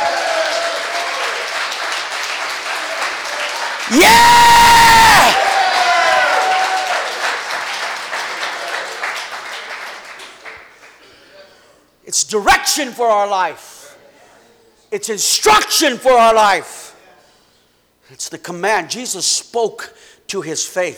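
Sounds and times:
audience clapping: 0:00.0 - 0:11.1
speech: 0:03.9 - 0:04.4, 0:12.3 - 0:13.7, 0:14.9 - 0:16.8, 0:18.1 - 0:20.9.

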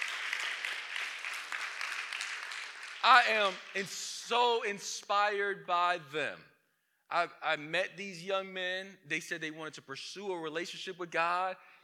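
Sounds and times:
audience clapping: 0:00.0 - 0:04.0
speech: 0:03.0 - 0:06.5, 0:07.1 - 0:11.8.

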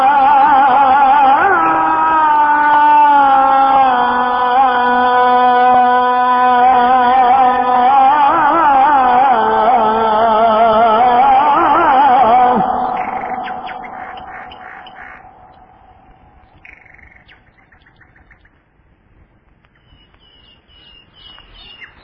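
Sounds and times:
dawn call to prayer sung by a single voice: 0:00.0 - 0:17.4
bird chirps: 0:12.8 - 0:18.6, 0:19.7 - 0:22.0.

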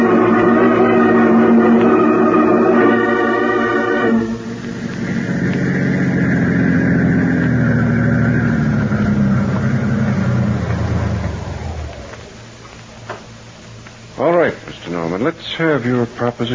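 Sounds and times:
car engine rumbling: 0:00.0 - 0:13.0
speech: 0:15.6 - 0:16.5.

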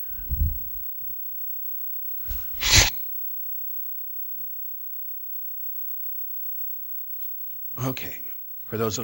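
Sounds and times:
person blowing nose: 0:02.3 - 0:03.0
speech: 0:07.8 - 0:09.0.

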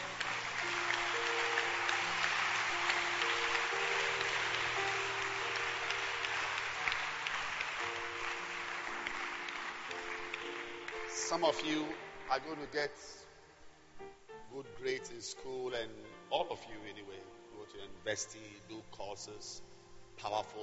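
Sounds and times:
audience applause: 0:00.0 - 0:12.6
speech: 0:11.3 - 0:13.2, 0:14.6 - 0:20.6.

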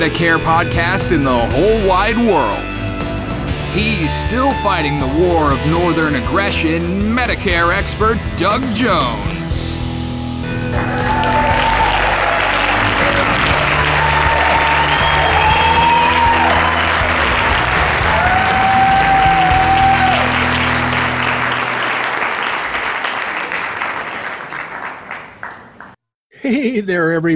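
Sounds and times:
speech: 0:00.0 - 0:02.7, 0:03.7 - 0:09.8, 0:26.6 - 0:27.3
crowd applauding: 0:10.4 - 0:26.0.

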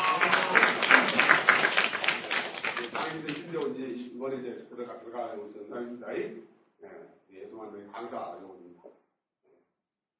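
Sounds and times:
audience applause: 0:00.0 - 0:03.6
speech: 0:04.2 - 0:09.0.

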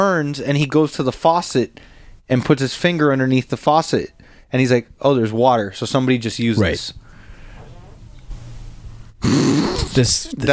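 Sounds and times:
speech: 0:00.0 - 0:07.0, 0:09.2 - 0:10.5
fart: 0:09.2 - 0:10.2.

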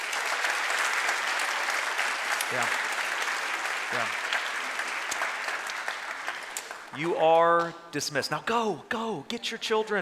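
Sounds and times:
audience applause: 0:00.0 - 0:07.2
speech: 0:02.5 - 0:02.8, 0:03.9 - 0:04.2, 0:07.0 - 0:10.0.

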